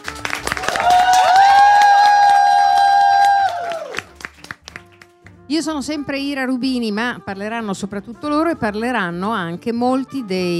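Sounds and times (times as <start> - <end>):
crowd applauding: 0.0 - 5.3
high-pitched cheers and whoops: 0.6 - 4.1
speech: 5.6 - 10.5.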